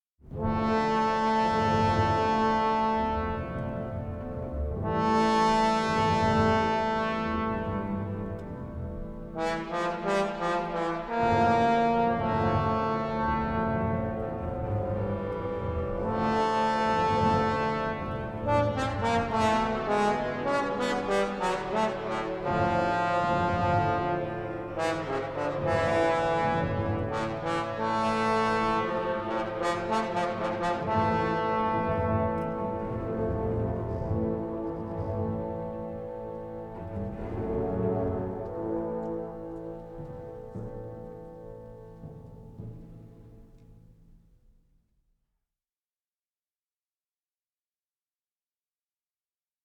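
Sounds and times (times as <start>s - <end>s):
trombone: 0.3s - 42.9s.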